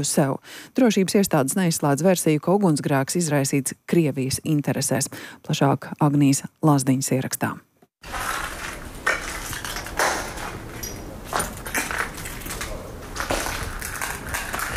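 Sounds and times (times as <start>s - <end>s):
speech: 0.0s - 8.3s
glass shards crunching underfoot: 8.0s - 14.7s.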